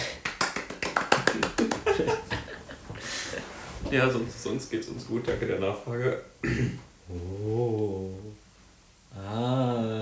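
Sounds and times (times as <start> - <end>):
hand clapping: 0.0 - 2.4
speech: 2.0 - 2.2, 3.9 - 8.4.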